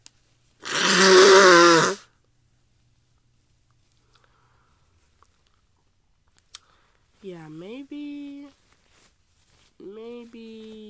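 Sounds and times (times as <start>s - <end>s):
person blowing nose: 0.6s - 2.1s.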